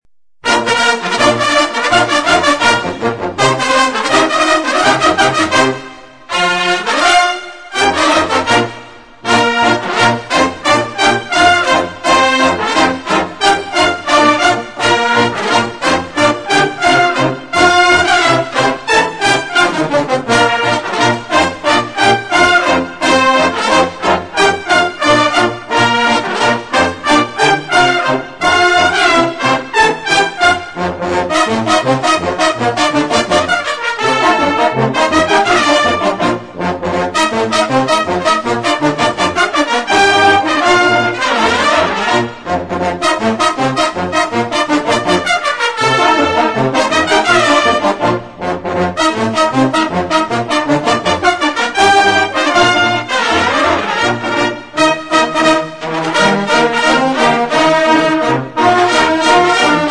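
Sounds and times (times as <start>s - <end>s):
brass instruments: 0.4s - 59.8s.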